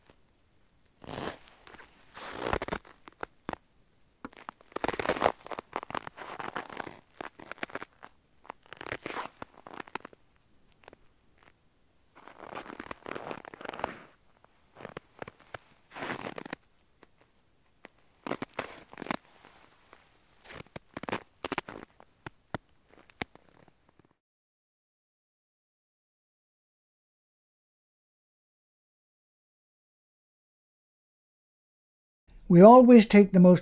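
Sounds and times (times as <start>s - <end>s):
footsteps crunching on crusted snow: 1.0s - 3.6s, 4.3s - 10.2s, 12.2s - 16.6s, 18.2s - 22.1s
speech: 32.5s - 33.6s.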